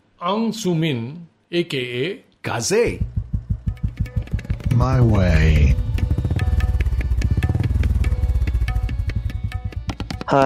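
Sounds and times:
speech: 0.2 - 3.2, 4.8 - 5.8, 10.3 - 10.4
Royal Enfield 500 Classic motorcycle engine running: 2.9 - 10.4.

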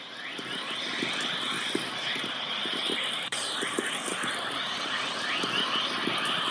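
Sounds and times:
whistler-mode chorus radio wave audio: 0.0 - 6.4.

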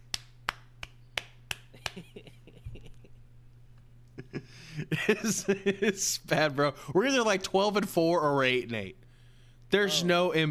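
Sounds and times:
coach clap: 0.1 - 2.1
laughter: 1.8 - 3.2, 4.2 - 6.2
speech: 4.8 - 9.0, 9.7 - 10.4.

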